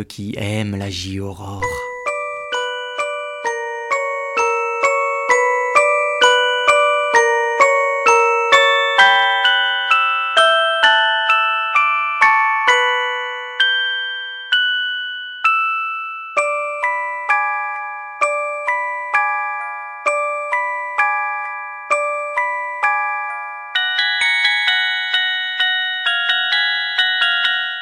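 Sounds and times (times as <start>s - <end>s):
speech: 0.0s - 1.8s
eerie mobile phone ringtone from a horror film: 1.4s - 27.8s.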